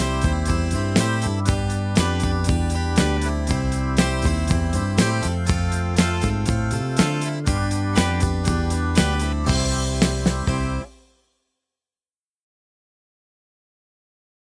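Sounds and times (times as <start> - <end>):
instrumental music: 0.0 - 11.1.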